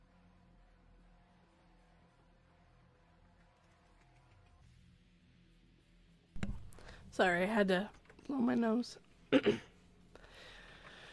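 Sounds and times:
speech: 7.1 - 9.7
gruff throat clearing: 9.3 - 9.7.

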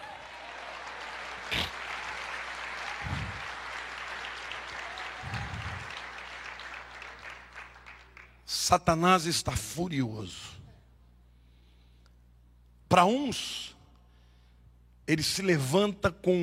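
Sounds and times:
audience applauding: 0.0 - 8.4
speech: 8.7 - 10.6, 12.9 - 13.7, 15.1 - 16.4.

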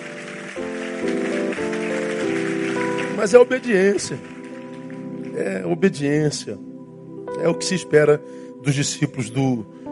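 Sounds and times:
audience applause: 0.0 - 5.8
sustained keyboard chords: 0.0 - 9.9
speech: 3.2 - 4.4, 5.4 - 6.7, 7.4 - 9.8.

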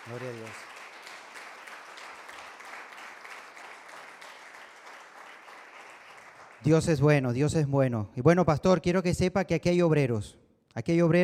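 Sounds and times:
audience applauding: 0.0 - 6.9
speech: 0.1 - 0.7, 6.6 - 11.2.

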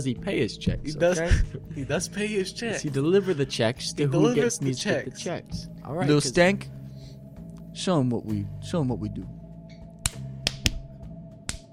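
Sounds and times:
speech: 0.0 - 6.8, 7.8 - 9.4
hand claps: 10.0 - 11.7.

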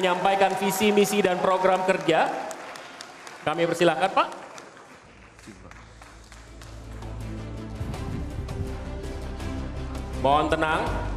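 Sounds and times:
speech: 0.0 - 2.5, 3.4 - 4.4, 10.2 - 11.1
audience clapping: 0.0 - 8.2.

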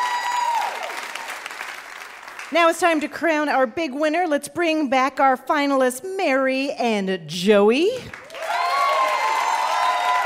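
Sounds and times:
studio audience applause: 0.0 - 2.5, 8.1 - 10.2
speech: 2.5 - 8.2.

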